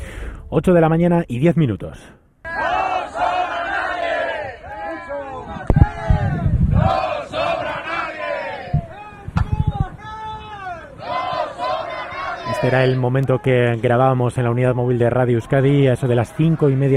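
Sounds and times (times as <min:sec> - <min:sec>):
speech: 0:00.5 - 0:02.2, 0:12.6 - 0:16.9
crowd of striking workers chanting: 0:02.5 - 0:09.1, 0:10.5 - 0:13.1, 0:14.8 - 0:16.9.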